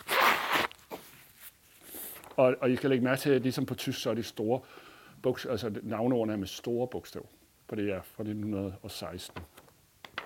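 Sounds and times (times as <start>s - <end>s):
person blowing nose: 0.0s - 0.8s
speech: 2.4s - 9.5s.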